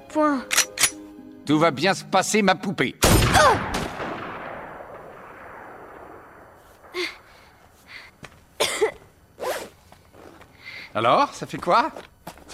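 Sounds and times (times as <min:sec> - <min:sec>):
speech: 0:00.1 - 0:00.6, 0:01.5 - 0:03.8, 0:11.0 - 0:12.1
gunshot fired at close range: 0:03.0 - 0:07.6
short sharp breathy bursts: 0:06.9 - 0:08.2.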